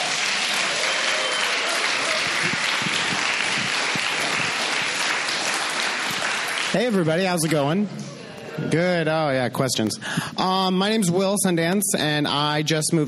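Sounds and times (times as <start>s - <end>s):
audience applause: 0.0s - 7.6s
speech: 6.8s - 13.0s.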